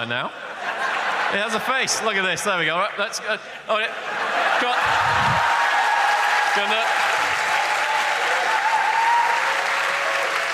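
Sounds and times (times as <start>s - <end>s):
speech: 0.0s - 0.6s, 1.3s - 5.6s, 6.6s - 7.1s
laughter: 0.3s - 7.5s
audience applause: 4.5s - 10.5s.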